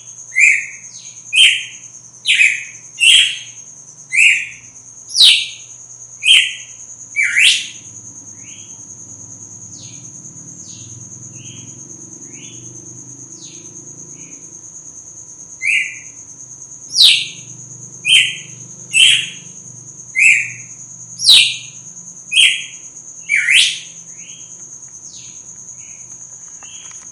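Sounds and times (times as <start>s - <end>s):
red-cowled cardinal song: 0.3s - 7.8s, 15.6s - 16.1s, 16.9s - 17.5s, 18.1s - 19.5s, 20.2s - 24.4s.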